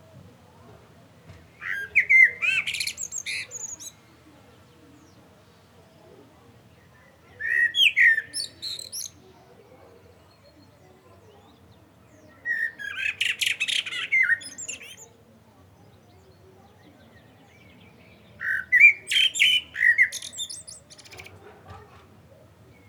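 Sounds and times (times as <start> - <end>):
common blackbird singing: 1.5 - 4.1, 6.8 - 9.2, 10.0 - 15.2, 15.8 - 21.4.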